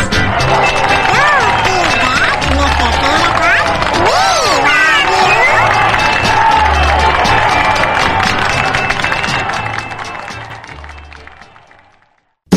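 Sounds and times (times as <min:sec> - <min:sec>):
applause: 0:00.0 - 0:12.4
cheering: 0:00.0 - 0:12.4.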